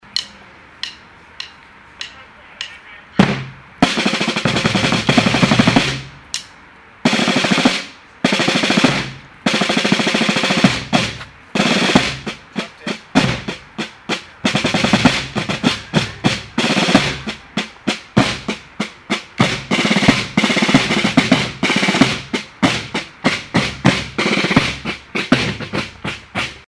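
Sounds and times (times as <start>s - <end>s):
drums: 0.0s - 26.6s.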